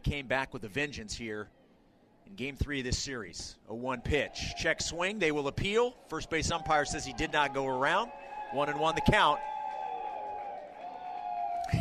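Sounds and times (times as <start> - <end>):
speech: 0.1 - 1.6, 2.3 - 9.5
sarcastic crowd applause after umpire call: 7.0 - 11.7.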